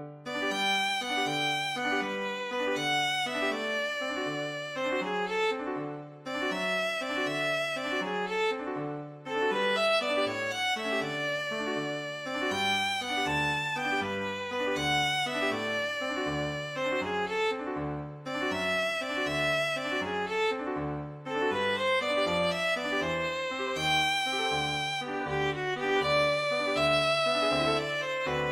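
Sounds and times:
wandering violin playing: 0:00.3 - 0:28.4.

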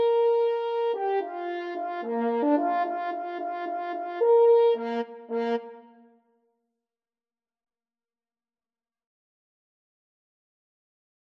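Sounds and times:
french horn duet: 0:00.0 - 0:05.9.

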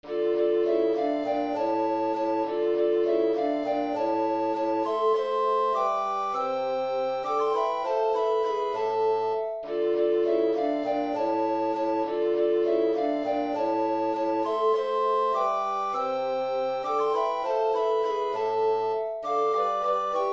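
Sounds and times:
recorder quartet: 0:00.0 - 0:20.3.

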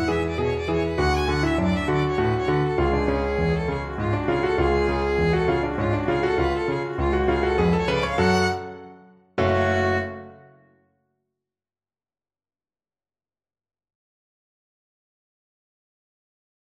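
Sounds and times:
violin: 0:00.0 - 0:10.5.

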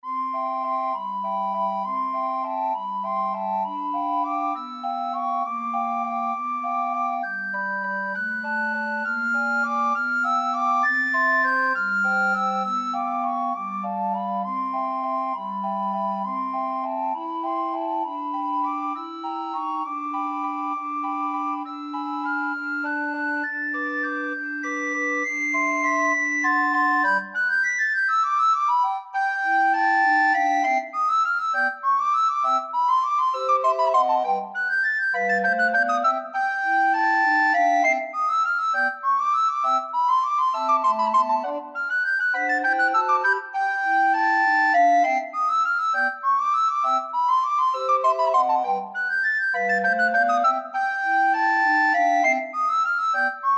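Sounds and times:
recorder quartet playing a waltz: 0:00.1 - 0:53.5.

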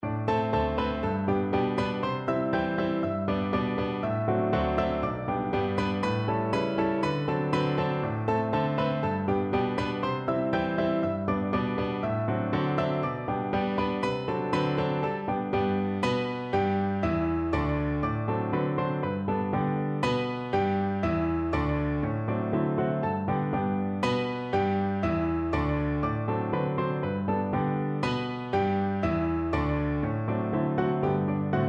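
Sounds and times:
piano duet: 0:00.0 - 0:31.6.

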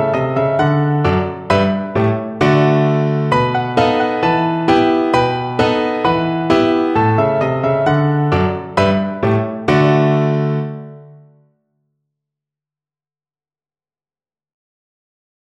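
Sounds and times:
classical piano piece: 0:00.0 - 0:11.5.

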